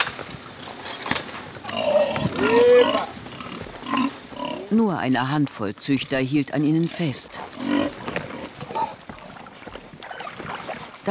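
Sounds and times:
steady outdoor hiss: 0:00.0 - 0:09.1
pig squeals: 0:01.6 - 0:04.7, 0:07.4 - 0:09.0, 0:10.0 - 0:10.8
pigs grunting and snorting outdoors: 0:01.6 - 0:04.8, 0:06.5 - 0:11.0
speech: 0:04.7 - 0:07.8.

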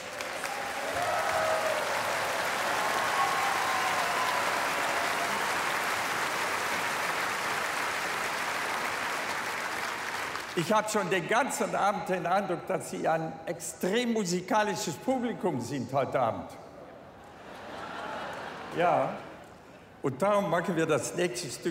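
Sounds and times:
applause: 0:00.0 - 0:11.0
speech: 0:10.6 - 0:16.6, 0:18.8 - 0:19.2, 0:20.0 - 0:21.6
laughter: 0:17.2 - 0:19.4.

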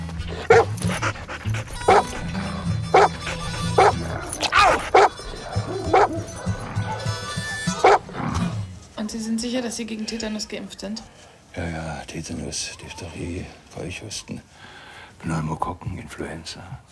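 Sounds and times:
dog panting: 0:00.0 - 0:08.1
dog barking: 0:00.3 - 0:07.2, 0:07.8 - 0:08.1
speech: 0:09.2 - 0:16.8.

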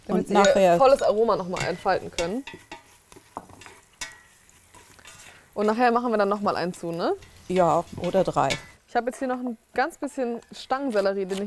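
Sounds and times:
spices roasting with onions in a pan: 0:00.0 - 0:11.4
speech: 0:00.2 - 0:02.7, 0:05.6 - 0:11.4
stirring clacks: 0:00.2 - 0:09.4.

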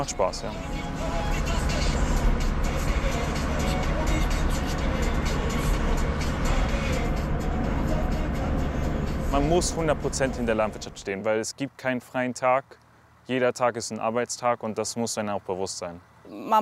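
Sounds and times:
speech: 0:00.0 - 0:01.6, 0:09.3 - 0:16.5
tractor engine running inside cab: 0:00.0 - 0:11.2.

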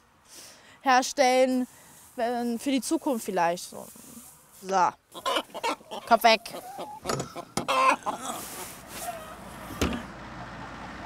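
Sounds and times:
speech: 0:00.8 - 0:08.7
chickens clucking: 0:03.9 - 0:11.0.

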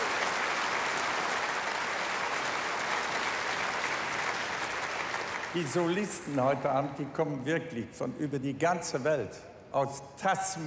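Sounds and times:
concert audience clapping: 0:00.0 - 0:06.7
speech: 0:05.5 - 0:10.6.

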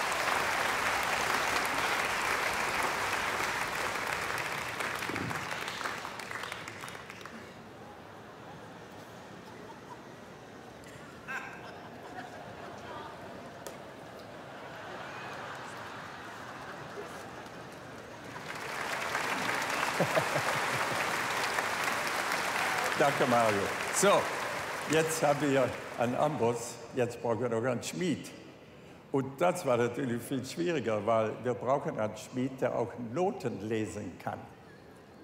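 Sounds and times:
audience applause: 0:00.0 - 0:07.8, 0:14.6 - 0:26.6
laughter: 0:08.2 - 0:10.5, 0:11.1 - 0:13.6, 0:14.2 - 0:18.0, 0:19.3 - 0:21.6
speech: 0:23.0 - 0:28.4, 0:29.1 - 0:34.6.

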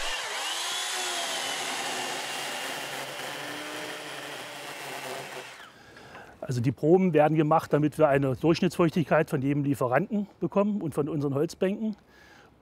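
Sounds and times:
power saw cutting into beech wood for a shavings sample: 0:00.0 - 0:05.8
speech: 0:06.5 - 0:12.6.

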